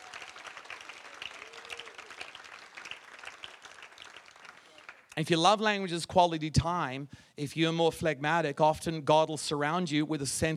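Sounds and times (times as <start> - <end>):
audience clapping: 0.0 - 5.2
speech: 5.2 - 10.5.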